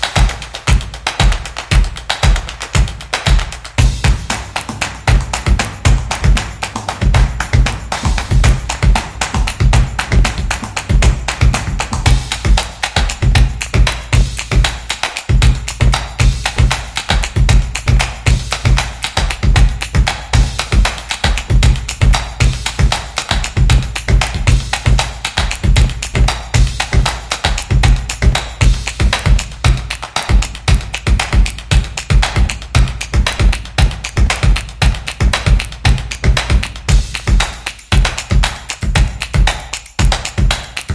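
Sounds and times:
percussion drum beat: 0.0 - 40.9.

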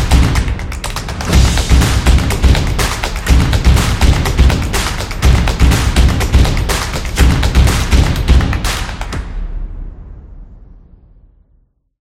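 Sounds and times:
drums: 0.0 - 9.3.

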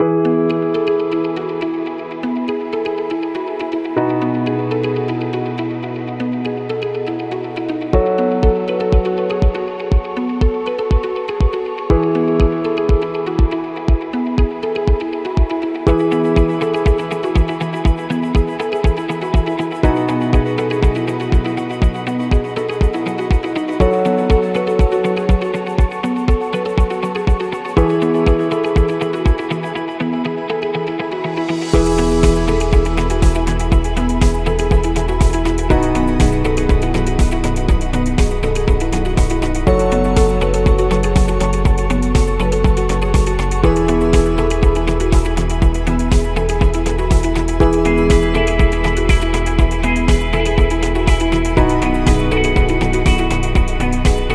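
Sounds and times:
positive inspiring music: 0.0 - 54.3.

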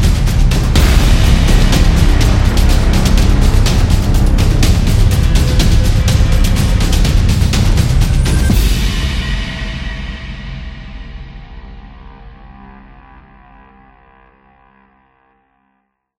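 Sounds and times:
Viking tribal dance music: 0.0 - 12.0.

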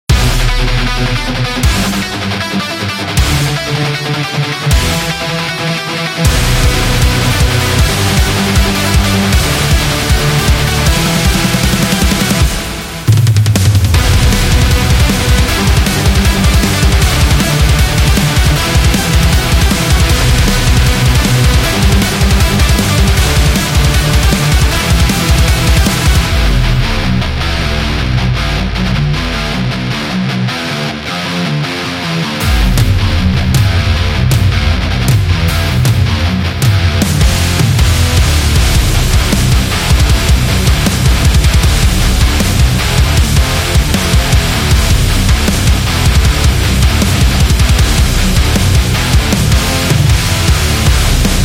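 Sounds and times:
fast heavy metal music: 0.0 - 51.4.

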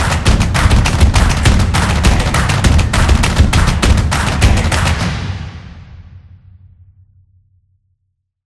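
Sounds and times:
energetic drum percussion: 0.0 - 6.1.

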